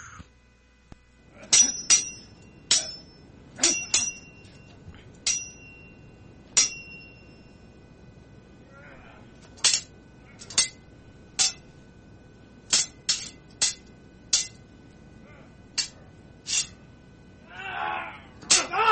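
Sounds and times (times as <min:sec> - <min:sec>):
metallic sword clangs sound effects: 0:01.5 - 0:04.6, 0:05.3 - 0:05.9, 0:06.5 - 0:07.3, 0:09.6 - 0:10.8, 0:11.4 - 0:11.7, 0:12.7 - 0:14.6, 0:15.8 - 0:16.8, 0:18.4 - 0:18.8.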